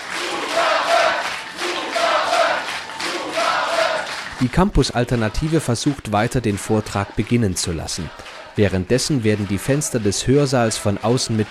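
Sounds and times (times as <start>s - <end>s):
protesting students shouting and chanting: 0.0s - 4.2s, 6.7s - 11.4s
protesting students clapping loudly: 0.0s - 11.4s
speech: 4.4s - 11.4s.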